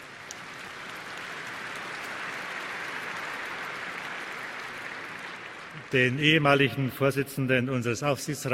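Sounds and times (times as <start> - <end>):
audience clapping: 0.0 - 6.8
speech: 5.9 - 8.5.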